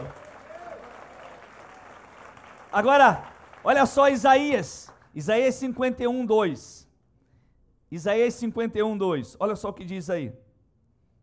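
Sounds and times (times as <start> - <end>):
audience applause: 0.0 - 5.0
speech: 2.7 - 6.8, 7.9 - 10.4.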